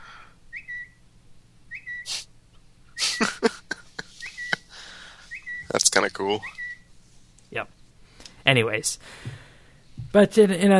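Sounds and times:
laughter: 3.0s - 5.1s
bird-like app notification chirp: 4.2s - 4.7s, 5.3s - 6.8s
speech: 6.0s - 6.6s, 7.5s - 7.8s, 8.5s - 9.4s, 10.1s - 10.7s.

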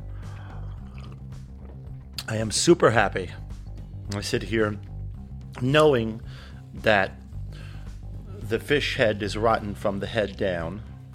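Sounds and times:
sipping coffee: 0.0s - 2.3s
speech: 2.3s - 3.4s, 4.1s - 4.9s, 5.6s - 7.2s, 8.5s - 10.9s.

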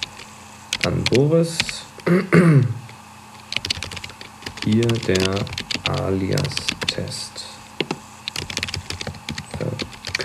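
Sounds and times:
keystrokes on a Mac keyboard typing a new e-mail: 0.0s - 2.1s, 3.4s - 7.1s, 7.8s - 10.2s
speech: 0.8s - 2.8s, 4.6s - 7.4s.

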